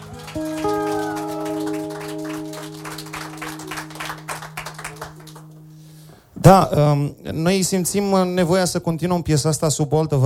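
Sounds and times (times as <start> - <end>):
crowd applauding: 0.0 - 6.2
held low musical chord: 0.1 - 6.6
speech: 0.4 - 0.7, 6.5 - 10.2.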